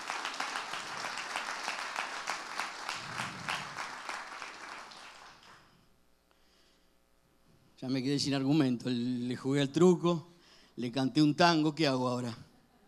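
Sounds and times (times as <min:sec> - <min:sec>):
applause: 0:00.0 - 0:05.8
speech: 0:07.8 - 0:12.5.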